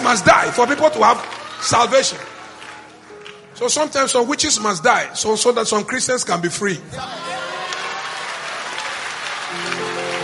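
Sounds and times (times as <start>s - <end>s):
audience clapping hands: 0.0s - 3.6s, 7.6s - 10.2s
speech: 0.1s - 2.4s, 3.6s - 7.5s.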